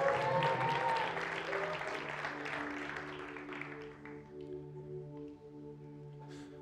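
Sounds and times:
audience cheering: 0:00.0 - 0:03.4
audience applauding: 0:00.0 - 0:04.5.

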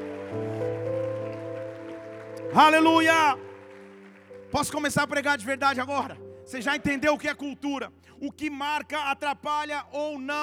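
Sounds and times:
audience applauding: 0:00.0 - 0:05.7
speech: 0:02.5 - 0:03.5, 0:04.5 - 0:10.4.

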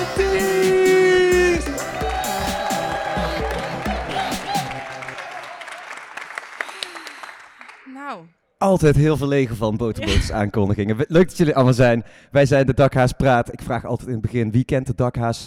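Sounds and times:
music playing: 0:00.0 - 0:05.8
crowd cheering and whooping: 0:00.4 - 0:07.2
audience applause: 0:01.6 - 0:07.9
speech: 0:08.7 - 0:15.4.

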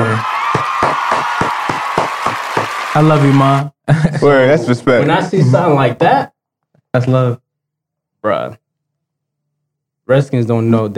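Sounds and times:
sharp hand claps: 0:00.0 - 0:03.4
speech: 0:03.0 - 0:06.3, 0:06.9 - 0:07.4, 0:08.2 - 0:08.6, 0:10.1 - 0:10.9.

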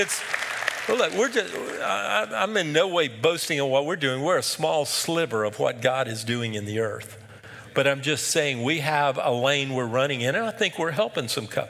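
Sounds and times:
audience clapping: 0:00.0 - 0:02.3
speech: 0:00.0 - 0:07.2, 0:07.8 - 0:11.6.

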